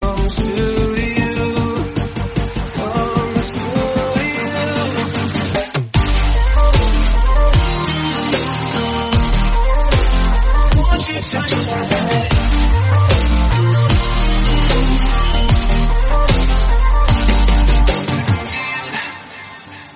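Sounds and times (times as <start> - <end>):
pop ringtone: 0.0 - 19.9.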